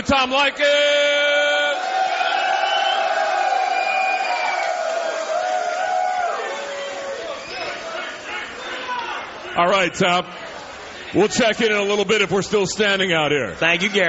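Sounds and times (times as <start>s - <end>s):
speech: 0.0s - 1.0s, 9.6s - 10.5s, 11.1s - 14.0s
large crowd cheering and shouting: 0.7s - 9.6s.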